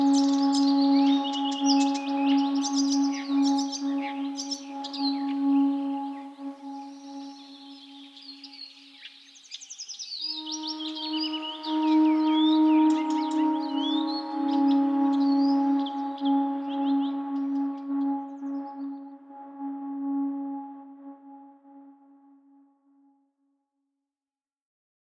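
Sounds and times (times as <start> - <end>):
bird sounds: 0.0 - 19.2.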